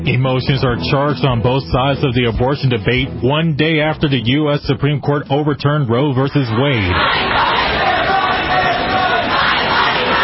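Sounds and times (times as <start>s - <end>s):
speech: 0.2s - 7.3s
large protest crowd chanting: 6.3s - 10.2s.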